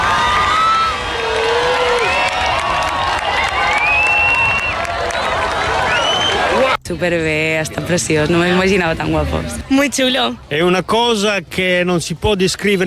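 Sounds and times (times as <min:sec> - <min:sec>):
crowd applause: 0:00.0 - 0:06.8
speech: 0:06.9 - 0:12.8.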